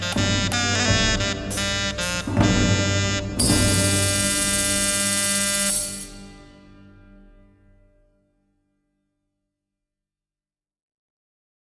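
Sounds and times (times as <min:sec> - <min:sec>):
singing horns: 0:00.0 - 0:06.7.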